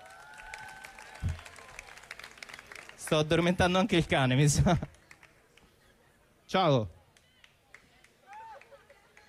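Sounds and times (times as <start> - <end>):
audience applause: 0.0 - 5.4
speech: 3.1 - 5.0, 6.5 - 7.0.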